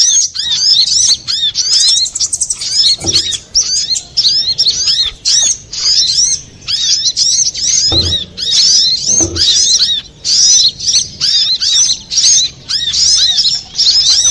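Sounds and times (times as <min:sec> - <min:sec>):
little spiderhunter singing: 0:00.0 - 0:14.2
low bumps: 0:07.8 - 0:09.9.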